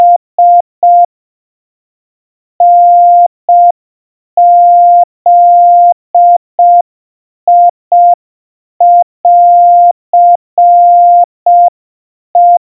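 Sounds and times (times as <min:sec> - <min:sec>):
700 Hz Morse code tones: 0:00.0 - 0:01.1, 0:02.6 - 0:03.7, 0:04.4 - 0:06.8, 0:08.8 - 0:11.7, 0:12.4 - 0:12.6.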